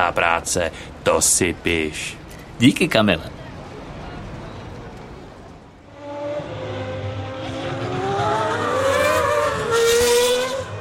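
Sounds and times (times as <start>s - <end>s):
speech: 0.0s - 3.4s
Formula 1 car engines whining on the main straight: 3.3s - 10.7s.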